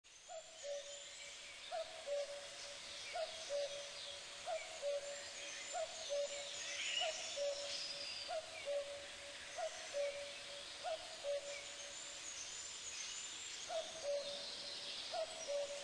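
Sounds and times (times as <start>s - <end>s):
common cuckoo calling: 1.7s - 2.5s, 3.1s - 9.0s, 9.6s - 11.9s, 13.7s - 14.4s, 15.1s - 15.8s.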